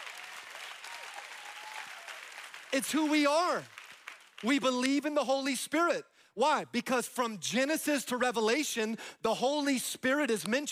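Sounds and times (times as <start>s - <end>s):
audience clapping: 0.0s - 5.1s
speech: 2.7s - 3.8s, 4.4s - 10.7s.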